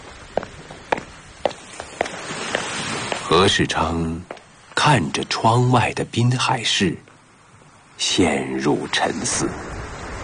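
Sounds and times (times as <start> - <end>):
footsteps of someone walking away: 0.0 - 3.4, 4.2 - 4.8
low hiss: 0.0 - 10.2
speech: 3.3 - 7.1, 8.0 - 9.7.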